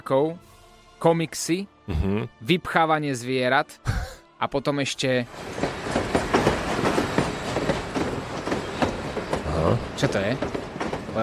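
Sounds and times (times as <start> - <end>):
speech: 0.1 - 5.7, 9.7 - 10.6
train running on rails: 4.8 - 11.2
clickety-clack of train wheels over track joints: 5.3 - 11.2.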